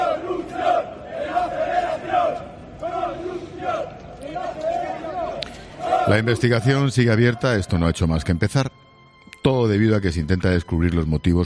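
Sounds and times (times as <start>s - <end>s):
football fans chanting in stadium: 0.0s - 7.4s
speech: 6.1s - 8.8s, 9.5s - 11.4s.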